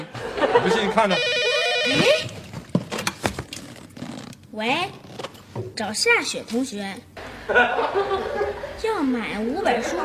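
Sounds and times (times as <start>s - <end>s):
laughter: 0.0s - 1.2s, 7.3s - 8.9s
speech: 0.7s - 2.3s, 4.6s - 5.0s, 5.6s - 10.0s
telephone ringing: 1.1s - 2.4s.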